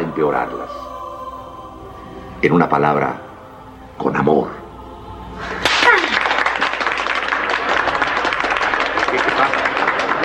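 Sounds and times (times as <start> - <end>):
speech: 0.2 - 0.8, 2.4 - 3.3, 4.0 - 4.6
applause: 5.7 - 10.2.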